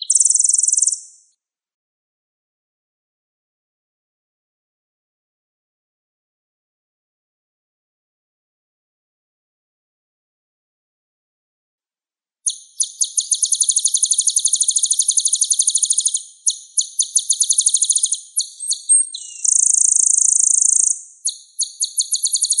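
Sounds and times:
olive-backed sunbird song: 0:00.0 - 0:01.3, 0:12.5 - 0:22.5.

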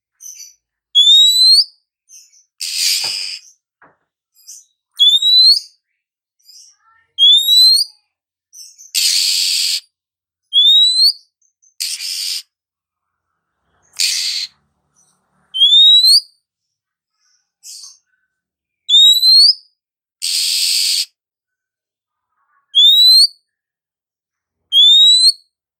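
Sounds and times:
female Oriental magpie-robin calling with rising whistled slurs: 0:00.2 - 0:03.6, 0:04.4 - 0:05.8, 0:06.4 - 0:08.0, 0:08.6 - 0:09.9, 0:10.5 - 0:12.5, 0:13.9 - 0:14.6, 0:15.5 - 0:16.3, 0:18.8 - 0:21.1, 0:22.7 - 0:23.4, 0:24.7 - 0:25.5.

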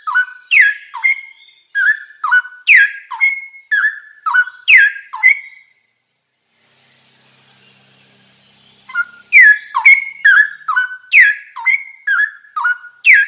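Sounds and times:
straw-headed bulbul singing: 0:00.0 - 0:13.2.

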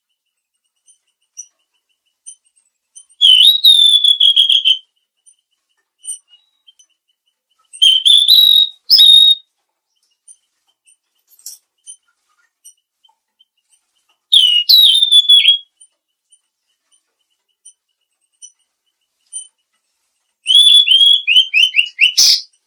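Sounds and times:
mangrove blue flycatcher whistling: 0:03.2 - 0:04.8, 0:07.8 - 0:09.4, 0:14.3 - 0:15.7, 0:20.4 - 0:22.5.

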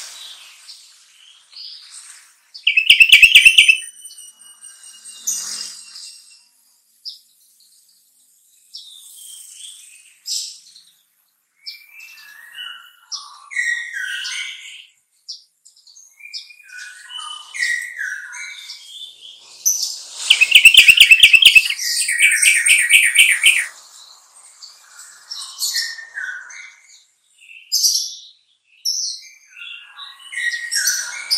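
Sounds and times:
sooty-headed bulbul song: 0:02.7 - 0:03.9, 0:20.3 - 0:23.7.

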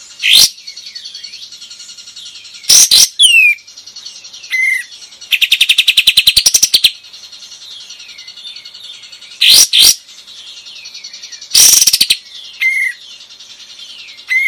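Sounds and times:
bulbul singing vigorously: 0:00.0 - 0:14.4.

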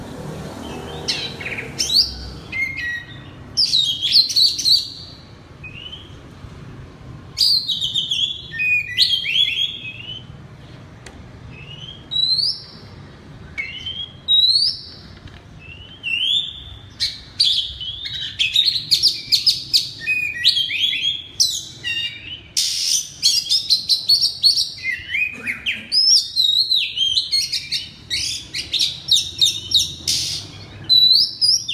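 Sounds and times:
Oriental magpie-robin singing: 0:00.6 - 0:06.3, 0:07.4 - 0:10.4, 0:11.4 - 0:31.7.

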